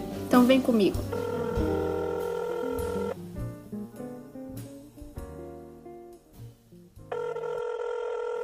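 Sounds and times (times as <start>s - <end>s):
speech: 0.4s - 1.7s
telephone electronic ring tone: 1.1s - 3.2s, 7.1s - 8.4s.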